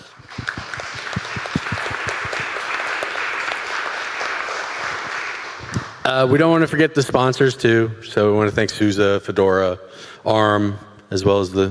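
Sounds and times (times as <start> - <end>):
crowd applauding: 0.0 - 6.1
speech: 6.1 - 11.6.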